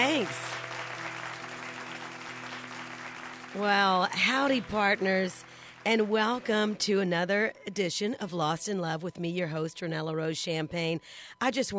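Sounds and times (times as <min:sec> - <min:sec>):
audience applause: 0:00.0 - 0:06.8
speech: 0:03.5 - 0:11.7.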